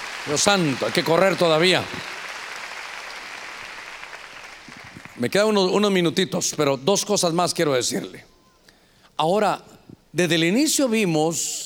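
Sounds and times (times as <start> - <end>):
loud clapping from many hands: 0.0 - 5.4
speech: 0.2 - 2.2, 5.2 - 8.3, 9.2 - 11.6.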